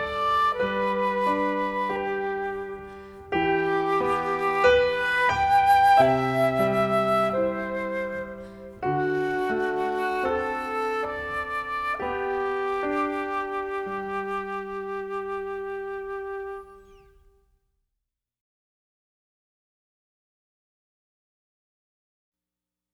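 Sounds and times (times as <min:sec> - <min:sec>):
prelude music: 0:00.0 - 0:17.3.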